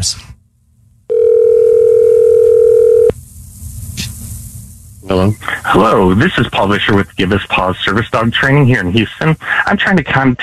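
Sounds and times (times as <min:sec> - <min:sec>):
speech: 0:00.0 - 0:00.3, 0:05.1 - 0:10.4
telephone dial tone of outgoing call: 0:01.1 - 0:03.1
faint telephone line noise: 0:01.1 - 0:10.4.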